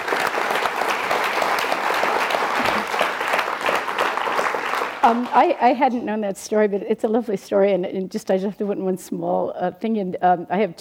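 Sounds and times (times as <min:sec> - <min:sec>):
audience applause: 0:00.0 - 0:05.6
speech: 0:05.0 - 0:10.7.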